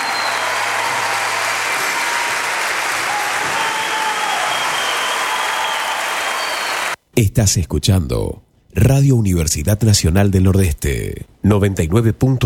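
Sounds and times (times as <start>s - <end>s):
audience applause: 0.0s - 7.0s
speech: 7.2s - 12.4s.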